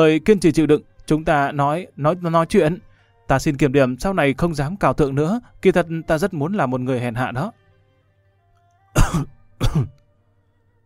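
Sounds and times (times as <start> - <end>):
speech: 0.0 - 7.6, 9.0 - 10.0
woman coughing violently: 9.0 - 10.0.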